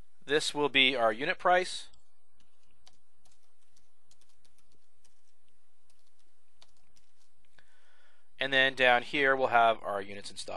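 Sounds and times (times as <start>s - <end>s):
speech: 0.3s - 1.9s, 8.4s - 10.5s
typing on a computer keyboard: 1.9s - 7.6s.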